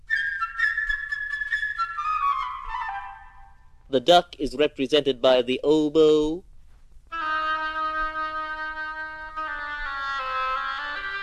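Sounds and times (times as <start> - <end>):
flute playing bird-like melody: 0.0 - 3.8, 7.1 - 11.2
speech: 3.9 - 6.5.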